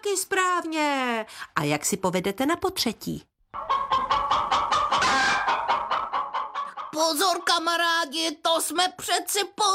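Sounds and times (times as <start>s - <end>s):
speech: 0.1s - 3.3s, 6.9s - 9.7s
hen clucking: 3.5s - 7.8s.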